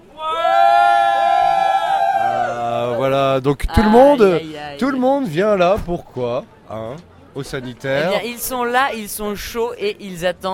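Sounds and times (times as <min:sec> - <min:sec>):
live audience at La Clanche cheering: 0:00.0 - 0:03.0
speech: 0:03.4 - 0:10.5.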